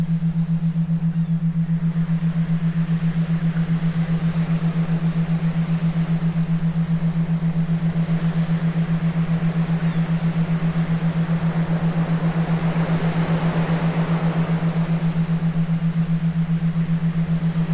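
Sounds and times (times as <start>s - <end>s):
theta binaural beats for meditation: 0.0s - 17.7s.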